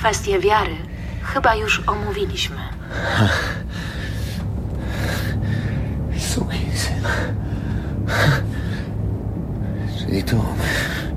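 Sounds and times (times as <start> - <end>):
speech: 0.0 - 4.0, 6.4 - 7.4, 10.1 - 11.0
heavy gasping breathing: 2.8 - 6.0, 6.8 - 9.0.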